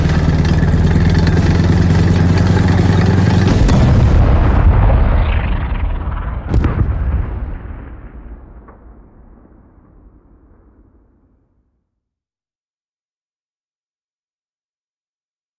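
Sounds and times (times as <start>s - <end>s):
World War 2 tanks: 0.0s - 8.8s.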